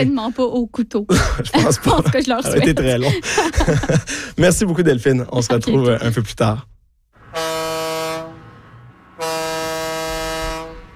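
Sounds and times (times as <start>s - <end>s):
speech: 0.0s - 6.7s
laughter: 1.1s - 4.6s, 5.4s - 6.0s
ship horn blasts: 7.2s - 10.9s.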